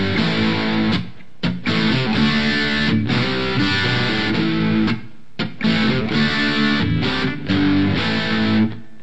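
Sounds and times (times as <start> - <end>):
amplifier drive: 0.0 - 9.0.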